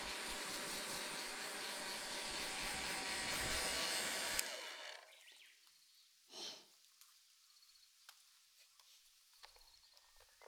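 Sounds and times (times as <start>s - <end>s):
hair dryer at a haircut: 0.0s - 5.2s.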